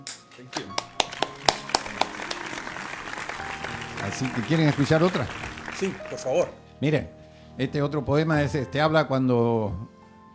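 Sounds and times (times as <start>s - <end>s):
speech: 0.0s - 1.0s, 4.0s - 10.0s
audience applause: 0.6s - 6.6s.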